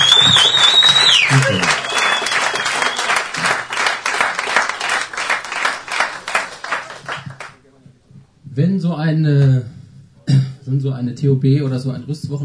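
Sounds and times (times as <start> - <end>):
audience applause: 0.0 - 7.6
speech: 8.7 - 9.8, 10.7 - 12.4.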